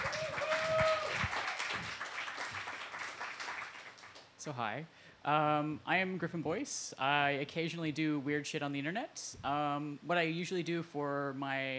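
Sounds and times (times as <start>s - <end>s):
audience applause: 0.0s - 4.2s
speech: 4.4s - 11.7s.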